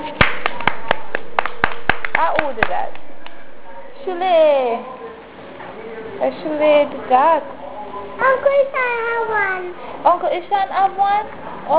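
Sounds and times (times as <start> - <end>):
hand claps: 0.2 - 3.4
speech: 2.2 - 3.0, 4.0 - 5.0, 6.2 - 7.6, 8.2 - 11.7.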